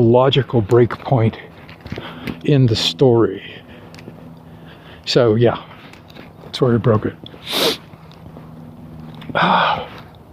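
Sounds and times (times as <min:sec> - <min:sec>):
speech: 0:00.0 - 0:03.6, 0:05.1 - 0:05.7, 0:06.5 - 0:07.7, 0:09.3 - 0:09.8
person sniffing and snorting: 0:07.4 - 0:07.9.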